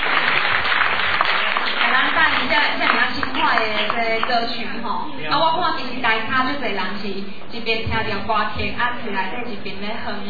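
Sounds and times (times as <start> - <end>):
audience applause: 0.0 - 4.3
speech: 3.6 - 10.2.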